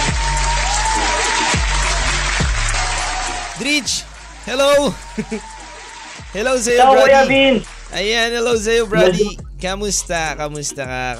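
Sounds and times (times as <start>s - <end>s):
audience applause welcoming a guest: 0.0s - 7.8s
speech: 3.6s - 5.5s, 6.3s - 11.1s
laughter: 4.7s - 5.6s, 6.4s - 7.6s, 8.8s - 9.4s.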